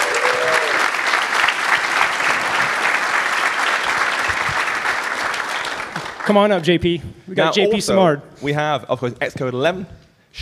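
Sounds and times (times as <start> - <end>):
audience applause: 0.0 - 6.7
speech: 6.3 - 10.4.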